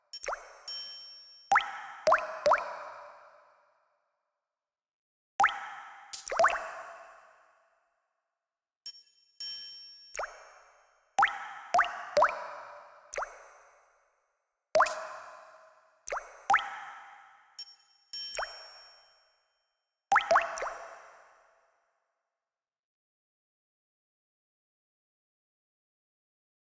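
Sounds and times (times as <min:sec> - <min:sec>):
water drops with reverb: 0:00.2 - 0:00.8, 0:01.5 - 0:02.9, 0:05.4 - 0:07.0, 0:11.2 - 0:13.4, 0:14.8 - 0:15.4, 0:16.1 - 0:19.0, 0:20.1 - 0:21.0.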